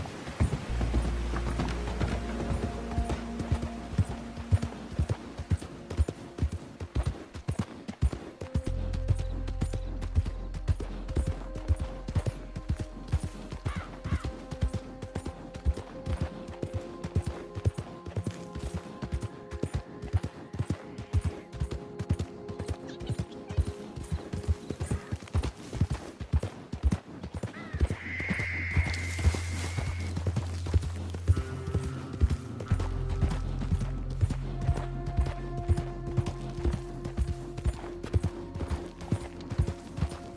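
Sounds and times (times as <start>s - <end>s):
horse hooves clip-clopping: 0.0s - 40.3s.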